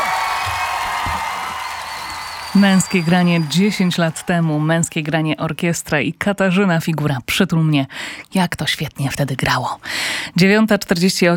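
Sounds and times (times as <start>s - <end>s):
concert crowd applause and cheering in Warsaw: 0.0s - 5.2s
speech: 2.6s - 11.3s.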